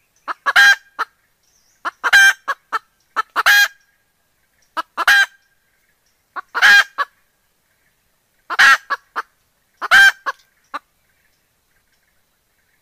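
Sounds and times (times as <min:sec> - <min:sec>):
hen clucking in a coop: 0:00.3 - 0:01.1, 0:01.8 - 0:03.8, 0:04.8 - 0:05.4, 0:06.4 - 0:07.2, 0:08.5 - 0:10.9.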